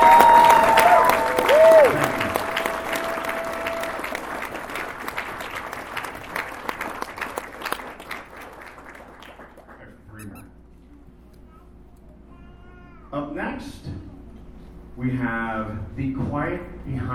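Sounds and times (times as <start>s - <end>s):
audience applause: 0.0s - 9.9s.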